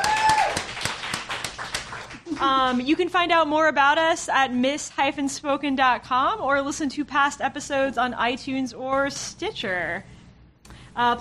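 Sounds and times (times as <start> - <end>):
audience clapping for itself at the Gallery Cabaret: 0.0 - 2.8
speech: 2.4 - 10.1, 11.0 - 11.1.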